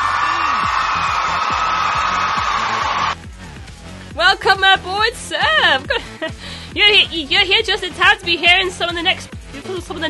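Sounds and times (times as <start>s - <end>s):
crowd cheering and applauding: 0.0s - 3.2s
whoops and yells: 0.0s - 3.2s
speech: 5.1s - 10.0s.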